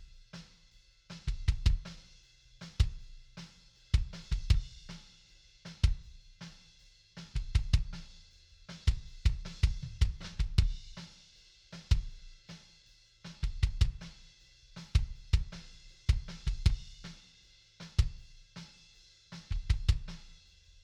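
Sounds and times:
kick drum: 1.3s - 1.9s, 4.0s - 4.8s, 7.4s - 8.0s, 8.9s - 10.9s, 13.4s - 14.2s, 14.9s - 17.0s, 18.0s - 18.2s, 19.5s - 20.2s.

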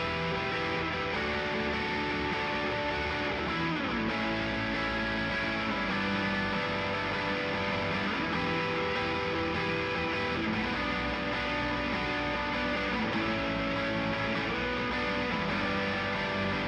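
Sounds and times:
guitars: 0.0s - 16.6s.

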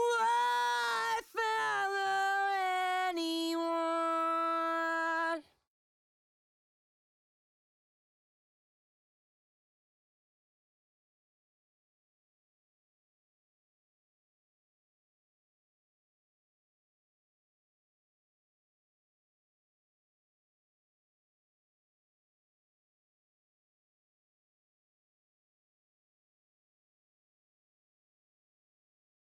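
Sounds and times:
main vocals: 0.0s - 5.5s.

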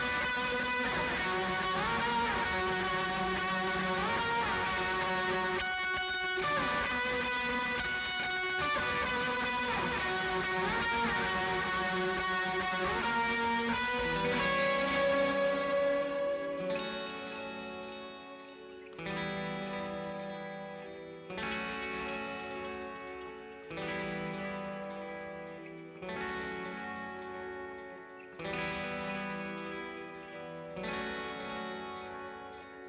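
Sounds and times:
guitars: 0.0s - 32.8s.

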